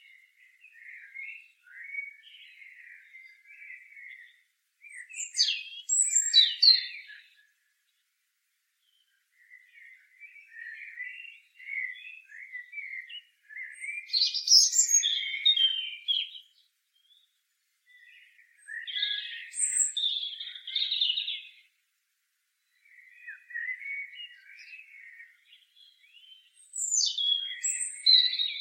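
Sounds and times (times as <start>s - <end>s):
European robin singing: 0.0s - 8.1s, 8.7s - 21.8s, 22.5s - 28.5s.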